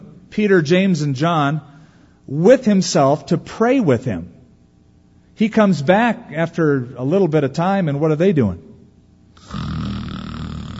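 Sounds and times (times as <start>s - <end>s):
speech: 0.3s - 1.7s, 2.3s - 4.3s, 5.4s - 8.7s
person imitating a snore: 9.4s - 10.7s.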